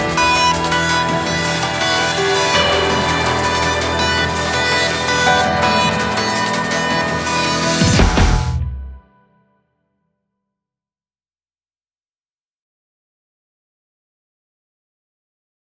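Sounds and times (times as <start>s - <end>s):
full off-vocal instrumental version: 0.0s - 9.2s.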